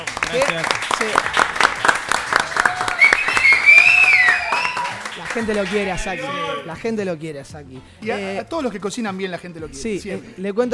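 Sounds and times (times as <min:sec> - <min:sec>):
speech: 0:00.0 - 0:01.5, 0:05.3 - 0:10.7
audience applause: 0:00.0 - 0:06.2.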